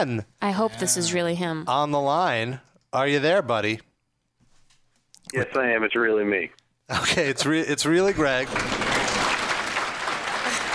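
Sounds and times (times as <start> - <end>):
speech: 0.0 - 3.9, 5.2 - 8.8
studio audience applause: 7.9 - 10.7.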